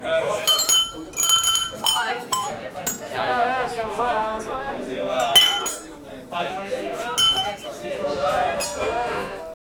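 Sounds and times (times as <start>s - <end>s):
group of friends toasting: 0.0s - 9.6s.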